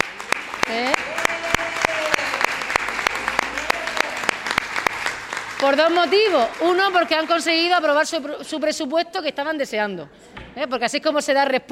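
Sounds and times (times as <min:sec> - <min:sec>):
audience applause at an official public event: 0:00.0 - 0:08.4
speech: 0:05.7 - 0:11.7.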